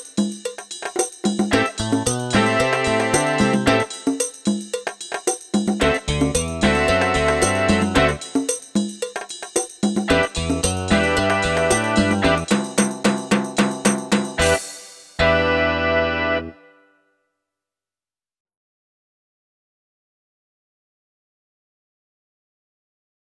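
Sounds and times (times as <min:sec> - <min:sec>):
snare drum: 0:00.0 - 0:15.3
bass drum: 0:01.4 - 0:03.9, 0:05.6 - 0:08.3, 0:09.9 - 0:15.6.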